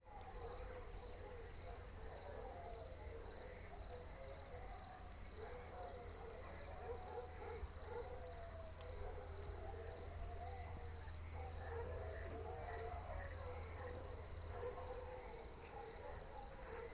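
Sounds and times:
crickets chirping at night in the country: 0.1 - 16.9.

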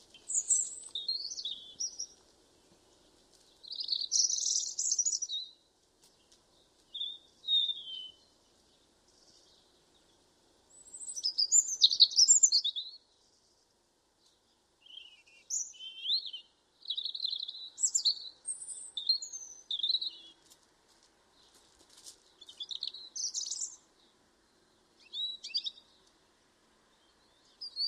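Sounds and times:
European robin Erithacus rubecula singing: 0.0 - 2.2, 3.5 - 13.2, 14.8 - 20.4, 22.3 - 26.2, 26.9 - 27.8.

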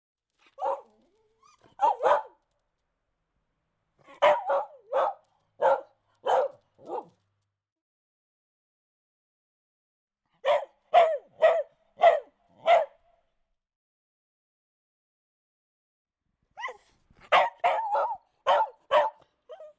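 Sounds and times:
dog barking: 0.5 - 1.0, 1.6 - 2.4, 4.0 - 7.2, 10.4 - 13.1, 16.6 - 19.7.

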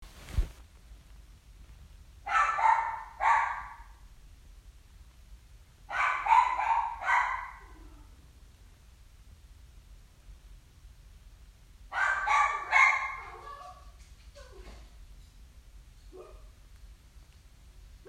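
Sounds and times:
dog barking: 2.3 - 4.0, 5.9 - 8.1, 11.9 - 14.0, 16.1 - 16.5.

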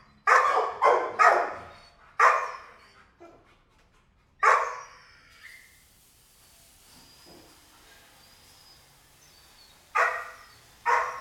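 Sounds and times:
kennel dog barking: 0.3 - 2.7, 4.4 - 4.9, 9.9 - 11.1.

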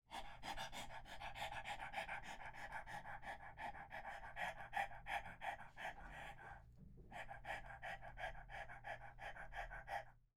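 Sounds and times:
dog panting rapidly: 0.1 - 10.3.

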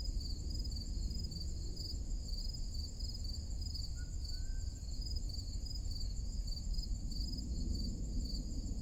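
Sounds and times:
crickets chirping in a forest clearing on a summer morning: 0.0 - 8.7.

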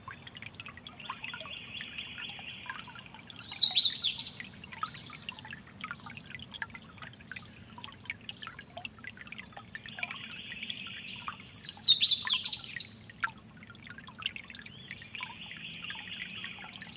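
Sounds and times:
Louisiana waterthrush whistled song: 0.0 - 6.1, 9.4 - 13.1, 14.0 - 16.9
running creek: 0.0 - 16.9.

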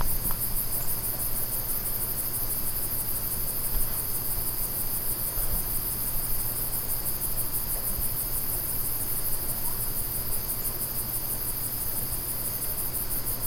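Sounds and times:
insects chirping: 0.0 - 13.4.

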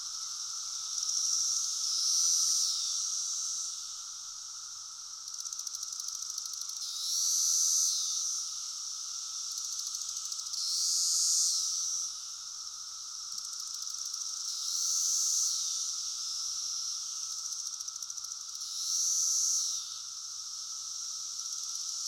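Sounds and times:
cicada mating call buzzing: 0.0 - 4.1, 4.8 - 8.7, 9.6 - 22.0.

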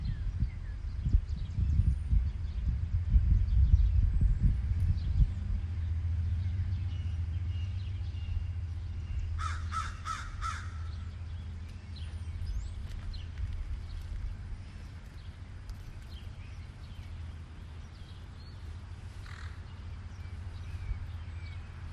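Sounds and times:
steady low rumble: 0.0 - 21.9
crow cawing: 9.4 - 10.9, 19.2 - 19.6.

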